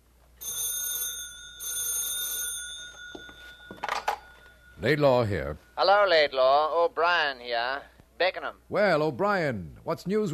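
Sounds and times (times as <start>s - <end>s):
telephone ringing: 0.4s - 6.4s
speech: 4.8s - 10.3s.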